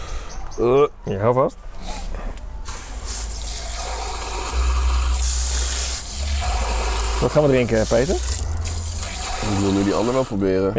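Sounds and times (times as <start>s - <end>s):
speech: 0.6s - 1.8s, 7.2s - 8.4s, 9.4s - 10.7s
rinsing drinking glasses under running water: 2.9s - 10.4s.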